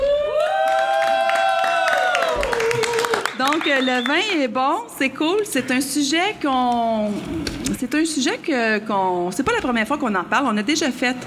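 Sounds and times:
live audience applauding and cheering at the Club L: 0.0s - 4.2s
speech: 3.4s - 11.2s.

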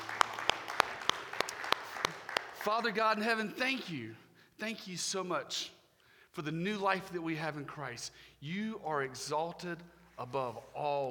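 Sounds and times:
clapping: 0.0s - 3.0s
speech: 2.6s - 5.8s, 6.4s - 11.0s.

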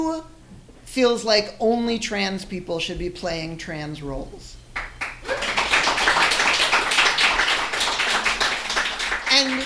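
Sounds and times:
speech: 1.0s - 4.6s
audience applause: 5.0s - 9.6s.

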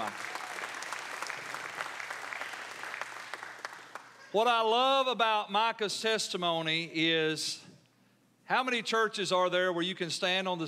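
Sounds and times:
audience applause: 0.0s - 4.2s
speech: 4.3s - 7.6s, 8.5s - 10.6s.

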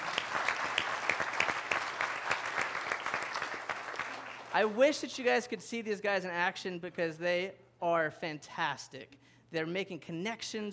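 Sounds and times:
audience applause for volunteers: 0.0s - 4.8s
speech: 4.6s - 10.7s.

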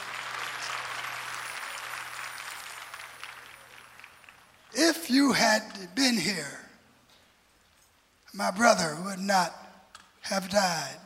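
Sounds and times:
audience clapping hands: 0.0s - 5.0s
speech: 4.7s - 6.6s, 8.4s - 9.6s, 10.2s - 11.0s.

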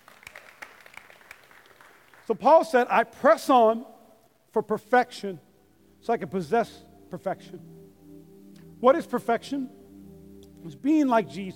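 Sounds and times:
audience clapping: 0.0s - 2.4s
speech: 2.3s - 3.9s, 4.5s - 5.4s, 6.0s - 7.8s, 8.8s - 9.8s, 10.6s - 11.5s.

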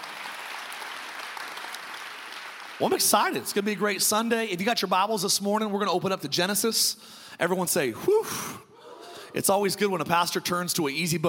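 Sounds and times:
audience hand clapping: 0.0s - 4.3s
speech: 2.8s - 8.7s, 9.3s - 11.2s.

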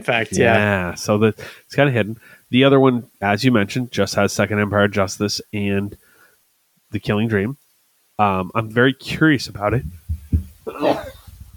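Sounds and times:
person talking quietly: 0.0s - 1.0s
speech: 0.0s - 6.1s, 6.9s - 7.6s, 8.2s - 11.0s
sneeze: 10.7s - 11.2s.

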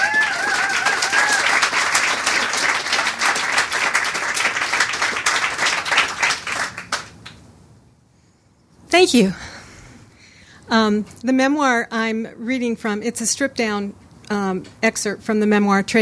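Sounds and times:
crowd applauding to welcome a memoirist: 0.0s - 7.4s
speech: 8.9s - 9.4s, 10.7s - 16.0s.

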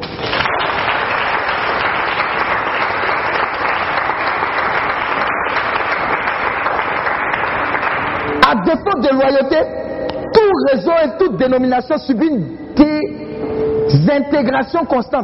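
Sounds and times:
church congregation applauding during a French-language worship service: 0.0s - 9.4s
speech: 8.6s - 9.8s, 10.6s - 13.2s, 13.9s - 15.2s.

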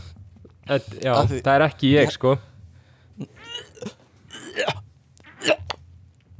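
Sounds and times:
speech: 0.7s - 2.5s, 3.2s - 3.9s
person gagging: 3.2s - 4.8s.

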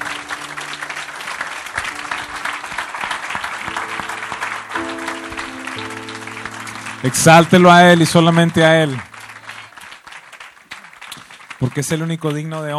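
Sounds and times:
sustained keyboard chords: 0.0s - 10.0s
crowd applauding: 0.0s - 12.7s
speech: 7.0s - 9.1s, 11.8s - 12.7s.

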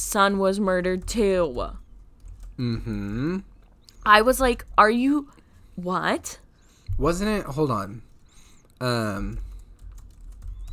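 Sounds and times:
speech: 0.0s - 1.8s, 2.6s - 8.1s, 8.8s - 9.5s
computer keyboard typing while searching online: 0.6s - 5.2s, 8.0s - 10.7s.

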